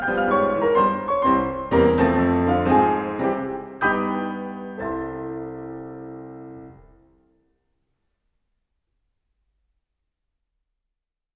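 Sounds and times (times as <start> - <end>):
improvised slow foxtrot for four hands: 0.0 - 7.6.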